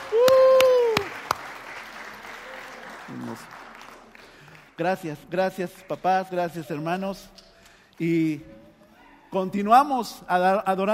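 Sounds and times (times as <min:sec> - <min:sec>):
audience applause: 0:00.0 - 0:04.8
speech: 0:04.8 - 0:07.4, 0:08.0 - 0:08.6, 0:09.3 - 0:10.9.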